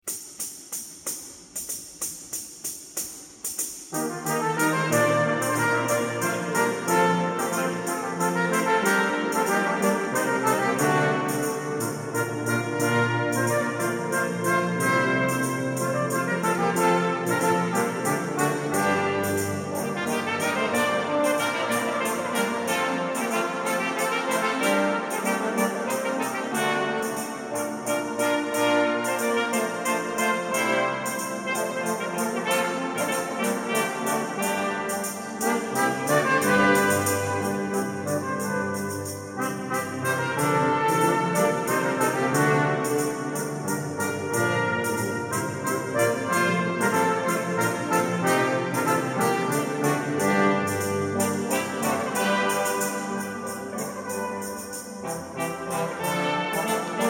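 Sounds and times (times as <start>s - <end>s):
brass: 0.0s - 57.0s
orchestra playing a gaillarda: 0.0s - 57.0s
percussion: 0.0s - 57.0s.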